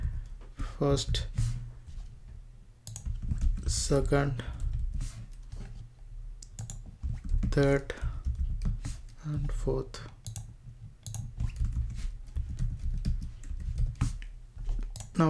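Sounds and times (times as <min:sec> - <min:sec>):
low steady hum: 0:00.0 - 0:15.2
speech: 0:00.8 - 0:01.4, 0:03.7 - 0:04.5, 0:07.6 - 0:08.0, 0:09.2 - 0:10.2
typing on a computer keyboard: 0:02.8 - 0:05.8, 0:06.4 - 0:09.6, 0:10.2 - 0:15.2.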